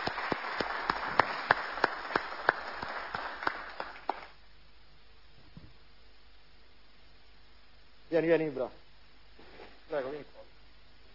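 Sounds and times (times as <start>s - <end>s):
audience applause: 0.0s - 4.4s
speech: 8.2s - 8.8s.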